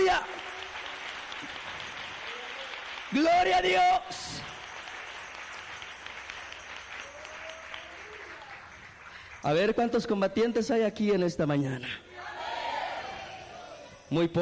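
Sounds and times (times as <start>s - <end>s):
audience applause: 0.0s - 9.6s
speech: 3.1s - 4.5s, 9.4s - 12.1s, 14.1s - 14.3s.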